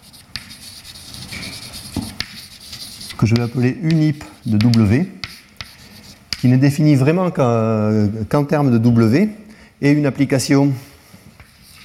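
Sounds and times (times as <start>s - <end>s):
writing on a board during a mathematics lecture: 0.0s - 6.5s
speech: 3.2s - 5.2s, 6.4s - 10.9s.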